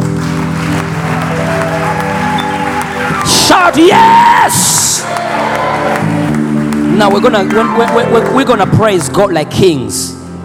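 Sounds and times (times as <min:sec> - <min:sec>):
audience clapping: 0:00.0 - 0:09.9
speech: 0:03.6 - 0:05.2, 0:07.0 - 0:10.2.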